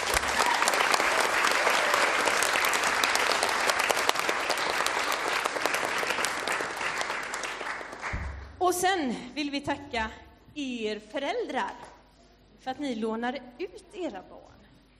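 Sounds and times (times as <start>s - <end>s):
audience applauding at a children's event in a church parish: 0.0s - 8.4s
speech: 8.7s - 11.8s, 12.6s - 14.4s.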